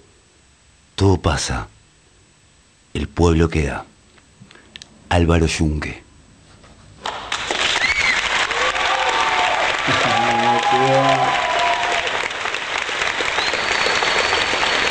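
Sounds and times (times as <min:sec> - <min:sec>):
speech: 0:01.0 - 0:01.8, 0:03.0 - 0:03.9, 0:05.1 - 0:06.0
audience applause: 0:07.0 - 0:14.8.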